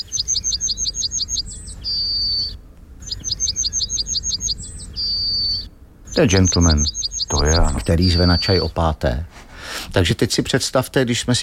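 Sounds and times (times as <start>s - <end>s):
British yellowhammer singing: 0.0s - 9.0s
speech: 6.2s - 9.3s, 10.0s - 11.4s.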